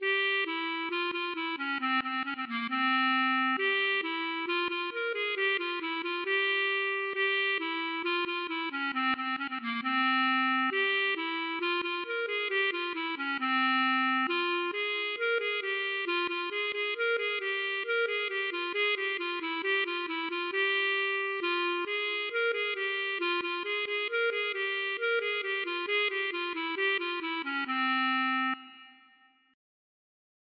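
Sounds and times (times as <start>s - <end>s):
klezmer music: 0.0s - 29.3s.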